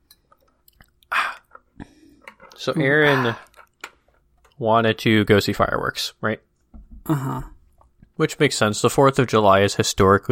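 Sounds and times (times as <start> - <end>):
person drinking water: 0.2 - 4.6, 7.0 - 8.1
speech: 2.6 - 3.5, 4.6 - 6.5, 7.1 - 7.5, 8.2 - 10.2.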